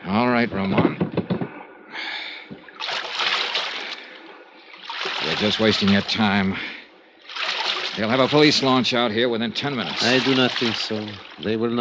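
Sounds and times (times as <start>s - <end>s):
speech: 0.1s - 1.3s, 5.3s - 6.7s, 8.0s - 11.7s
paddle splashing in water as a small boat is rowed across a bay: 2.6s - 6.6s, 7.2s - 11.6s.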